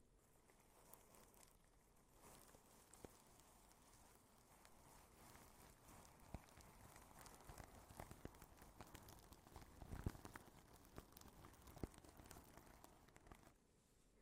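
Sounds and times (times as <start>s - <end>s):
plastic wrap crinkling: 0.2s - 13.6s.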